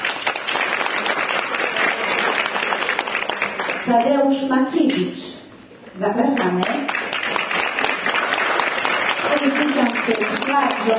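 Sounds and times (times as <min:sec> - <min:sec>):
audience applause: 0:00.0 - 0:03.9, 0:06.8 - 0:10.9
speech: 0:03.9 - 0:05.4, 0:06.0 - 0:07.0, 0:10.1 - 0:10.9.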